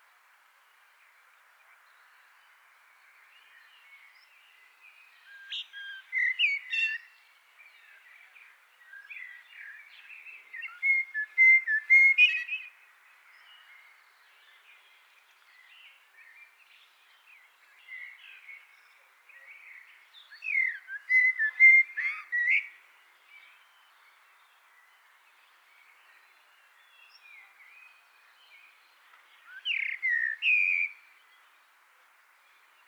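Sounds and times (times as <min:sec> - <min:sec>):
Eurasian blackbird singing: 0:03.4 - 0:12.8, 0:15.4 - 0:31.6.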